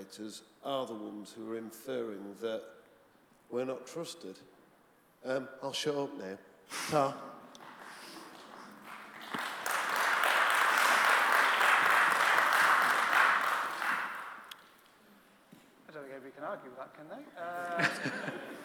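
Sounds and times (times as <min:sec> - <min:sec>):
speech: 0:00.1 - 0:02.8, 0:03.5 - 0:04.6, 0:05.2 - 0:07.4, 0:16.7 - 0:18.4
audience round of applause: 0:07.5 - 0:14.6
laughter: 0:17.5 - 0:18.6.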